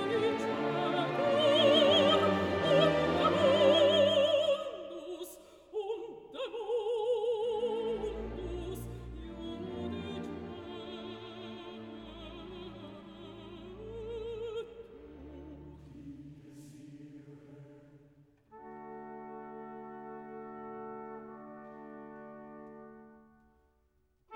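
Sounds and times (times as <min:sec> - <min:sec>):
mezzo-soprano singing: 0:00.0 - 0:16.2
chorus singing: 0:00.0 - 0:20.6.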